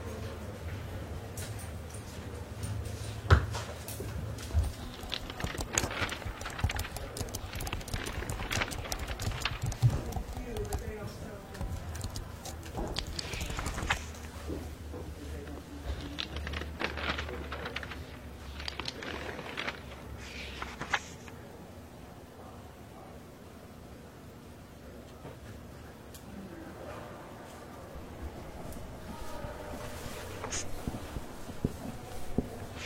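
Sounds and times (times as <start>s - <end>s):
faint murmur: 0.0s - 32.8s
pages turning in a library: 4.6s - 14.6s, 15.5s - 21.4s, 28.4s - 32.8s
scratching of writing: 4.7s - 14.3s, 30.0s - 32.8s
taps: 5.0s - 14.0s.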